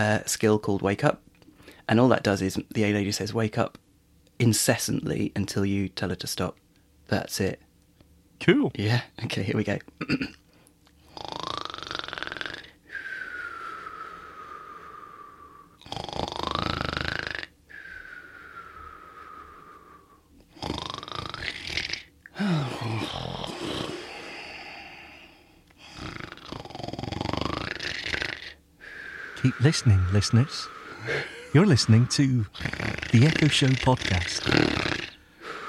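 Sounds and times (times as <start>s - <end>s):
speech: 0.0s - 1.3s, 1.9s - 3.8s, 4.4s - 7.7s, 8.4s - 10.4s, 29.6s - 35.0s
people imitating loud snoring: 11.1s - 12.8s, 15.8s - 17.9s, 19.4s - 24.8s, 25.8s - 35.6s.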